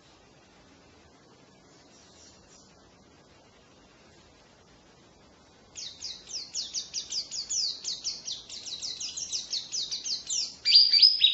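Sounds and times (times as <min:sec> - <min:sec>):
steady background hiss: 0:00.0 - 0:11.3
white-eye twitter: 0:05.8 - 0:11.3.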